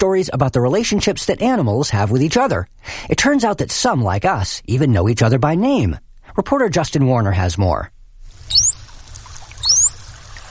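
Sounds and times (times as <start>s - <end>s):
speech: 0.0s - 8.6s
bottlenose dolphin signature whistle: 8.5s - 8.9s, 9.6s - 10.1s.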